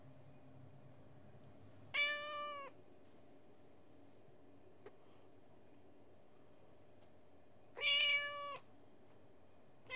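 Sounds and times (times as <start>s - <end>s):
Persian cat giving a nasal meow: 1.9s - 2.8s, 7.8s - 8.6s.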